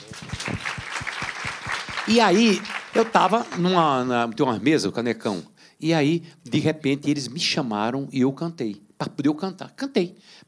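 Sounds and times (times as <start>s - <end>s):
audience applause: 0.0s - 4.2s
speech: 2.1s - 10.4s.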